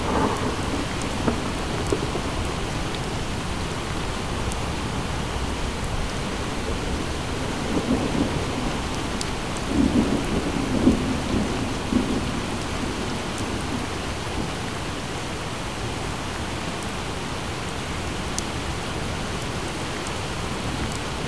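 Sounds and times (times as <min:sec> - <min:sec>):
thunder outside: 0:00.0 - 0:03.1, 0:06.9 - 0:14.5
rain outside: 0:00.0 - 0:21.2
wind outside: 0:00.0 - 0:21.2.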